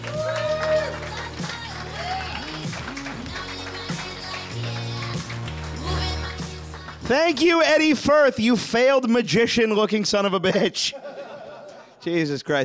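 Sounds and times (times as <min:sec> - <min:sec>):
audience applause: 0:00.0 - 0:07.5
speech: 0:07.1 - 0:11.1, 0:12.0 - 0:12.6
laughter: 0:10.4 - 0:12.2.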